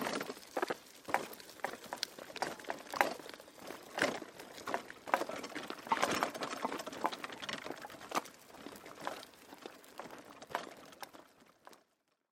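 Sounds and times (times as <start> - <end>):
footsteps walking on a golf course: 0.0 - 11.8
golf push cart wheels rolling: 0.0 - 11.9.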